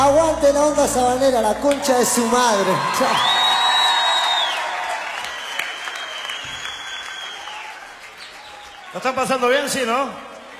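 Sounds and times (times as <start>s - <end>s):
speech: 0.0s - 3.5s, 9.0s - 10.3s
live audience applause: 1.7s - 9.6s.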